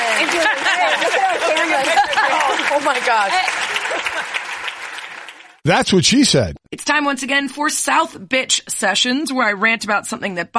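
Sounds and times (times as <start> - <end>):
laughter: 0.0 - 3.0, 3.7 - 4.5
audience applause: 0.0 - 6.5
speech: 0.3 - 2.1, 2.7 - 4.4, 5.6 - 10.5.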